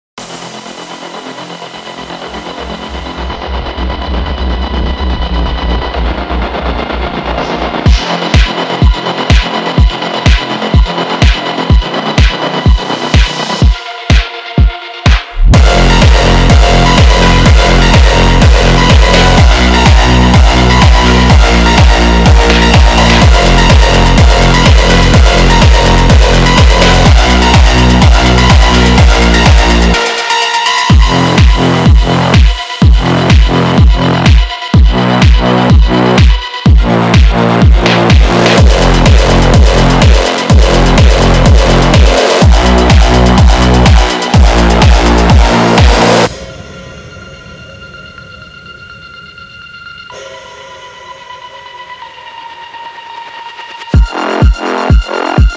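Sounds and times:
funk music: 0.2s - 50.4s, 51.0s - 55.5s.

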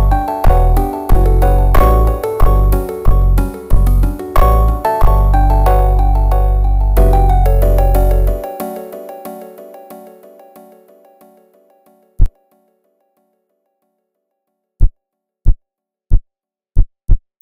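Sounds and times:
super slowed funk instrumental: 0.0s - 10.0s.

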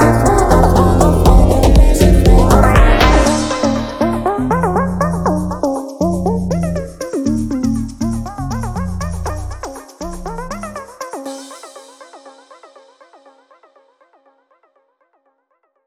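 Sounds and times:
slowed funk music: 0.0s - 10.8s.

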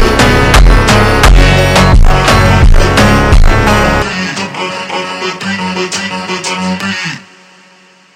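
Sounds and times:
ultra slowed funk music: 0.0s - 6.5s.

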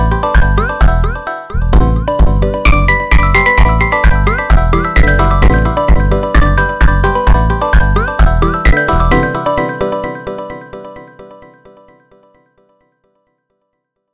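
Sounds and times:
funk instrumental music: 0.0s - 10.7s.

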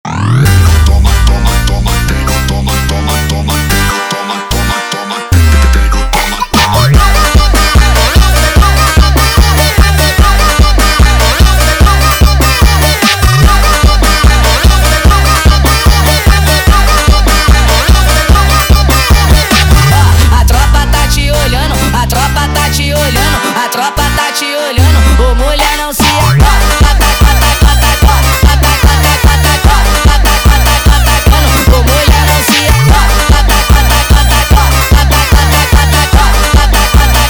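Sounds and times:
sped up funk music: 0.1s - 37.2s.

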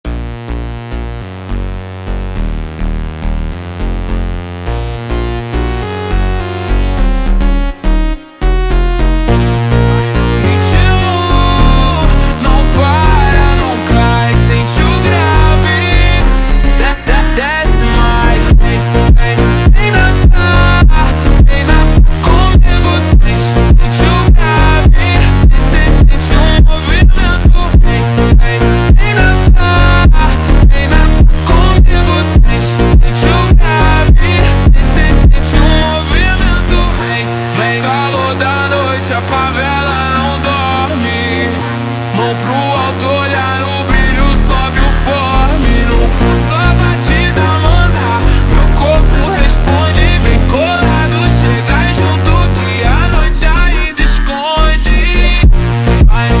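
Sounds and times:
super slowed funk music: 0.1s - 56.3s.

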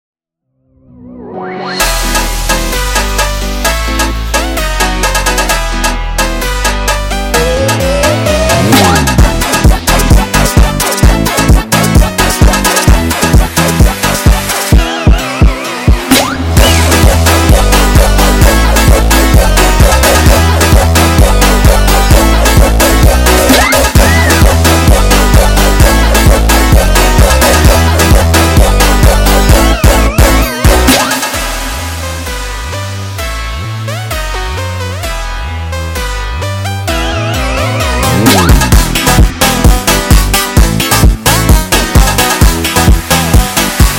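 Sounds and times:
montagem instrumental music: 0.8s - 43.9s.

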